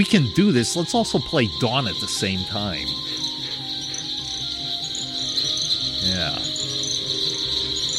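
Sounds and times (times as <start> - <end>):
speech: 0.0 - 3.2
cricket trill at dusk in the Okefenokee swamp: 0.0 - 7.9
fainter chirps and calls of creatures in the Okefenokee swamp: 0.6 - 6.6.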